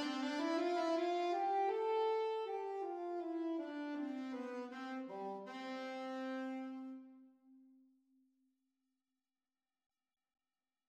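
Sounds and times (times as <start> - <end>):
alto saxophone duet at exam speed: 0.0 - 7.4.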